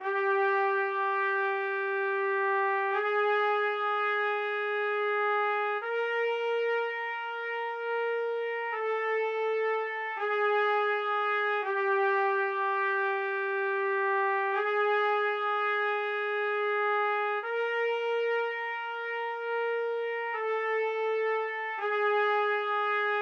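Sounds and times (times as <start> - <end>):
trumpets: 0.0 - 23.2.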